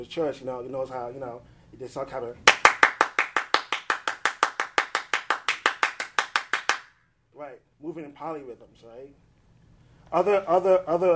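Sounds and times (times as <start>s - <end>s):
speech: 0.0s - 2.7s, 7.4s - 9.3s, 10.1s - 11.1s
hand clapping as percussion: 2.5s - 6.9s.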